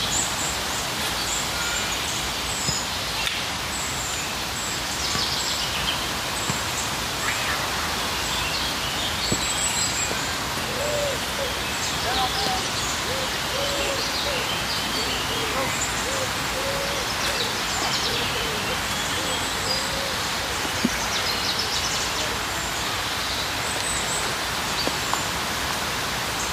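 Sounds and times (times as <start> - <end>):
steady park background hiss: 0.0 - 26.5
faint voices: 10.1 - 25.1.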